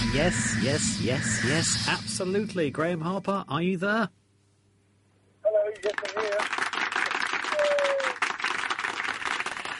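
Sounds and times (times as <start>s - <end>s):
speech: 0.1s - 4.2s
applause: 5.8s - 9.7s.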